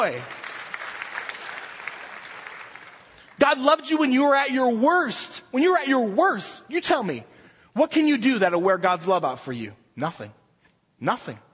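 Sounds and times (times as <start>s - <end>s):
speech: 0.0s - 0.4s, 3.4s - 10.4s, 11.0s - 11.5s
audience clapping: 0.0s - 4.1s.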